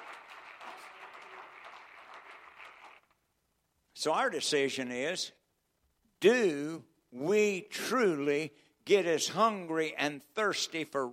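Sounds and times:
audience clapping hands: 0.0 - 3.2
speech: 4.0 - 5.4, 6.2 - 11.1.

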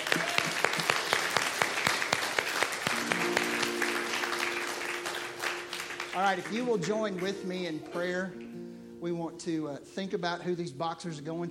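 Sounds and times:
audience clapping: 0.0 - 8.6
speech: 6.2 - 8.4, 9.0 - 11.4.

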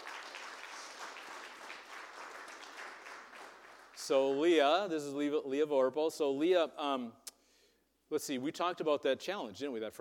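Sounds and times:
round of applause: 0.0 - 4.3
speech: 4.0 - 7.2, 8.1 - 9.9.

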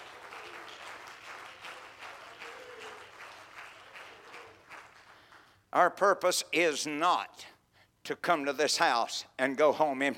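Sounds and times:
audience clapping hands: 0.0 - 5.6
speech: 5.8 - 7.5, 8.1 - 10.1.

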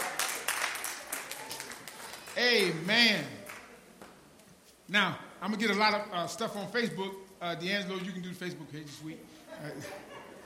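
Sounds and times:
audience clapping hands: 0.0 - 3.8
speech: 2.4 - 3.4, 4.9 - 10.1
laughter: 9.4 - 10.4.

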